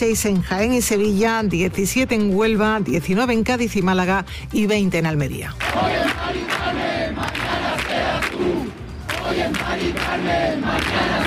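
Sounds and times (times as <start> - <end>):
speech: 0.0 - 6.5, 9.3 - 11.2
protest crowd shouting in Plaza de la Encarnación de Sevilla: 5.7 - 11.2.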